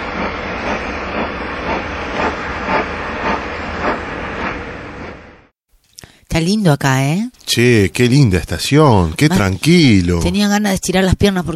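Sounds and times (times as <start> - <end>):
train rumbling into a station: 0.0 - 5.5
speech: 6.4 - 11.5.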